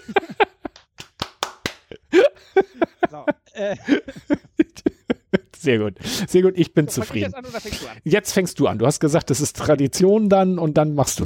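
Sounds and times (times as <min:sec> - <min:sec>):
speech: 0:00.0 - 0:00.2, 0:02.6 - 0:04.4, 0:05.6 - 0:11.2
laughter: 0:00.0 - 0:00.8, 0:01.8 - 0:08.0
irregular hand claps: 0:00.6 - 0:02.0.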